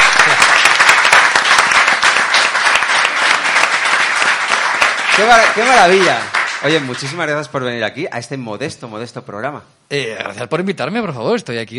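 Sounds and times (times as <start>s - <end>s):
audience applause: 0.0s - 7.5s
speech: 5.2s - 11.7s.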